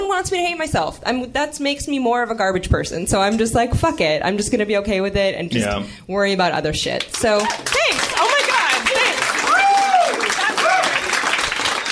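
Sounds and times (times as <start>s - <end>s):
speech: 0.2s - 8.2s
comedy club audience applause: 7.2s - 11.9s.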